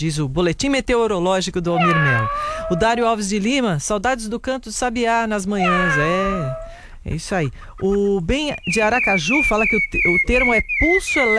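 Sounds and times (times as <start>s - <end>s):
speech: 0.0s - 11.3s
cat meowing: 1.8s - 3.0s, 5.6s - 6.8s.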